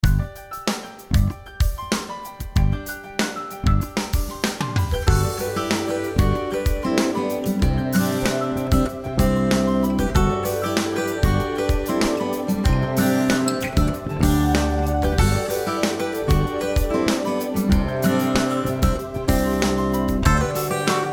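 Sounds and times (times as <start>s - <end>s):
background music: 0.0s - 21.1s.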